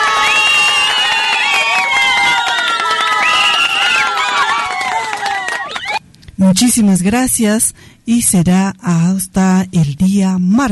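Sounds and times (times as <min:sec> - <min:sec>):
applause: 0:00.0 - 0:06.0
speech: 0:06.5 - 0:10.6.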